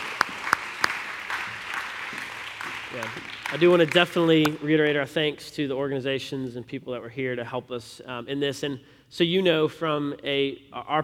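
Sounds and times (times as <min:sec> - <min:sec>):
audience clapping: 0:00.0 - 0:04.7
speech: 0:02.9 - 0:11.0.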